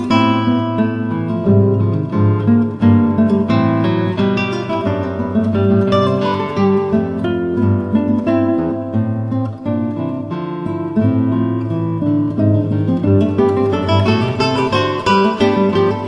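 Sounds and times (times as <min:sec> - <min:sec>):
three guitars: 0:00.0 - 0:16.0.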